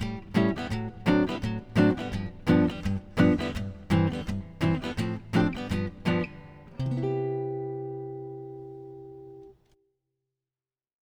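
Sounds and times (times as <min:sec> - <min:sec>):
jazz comping: 0:00.0 - 0:08.4.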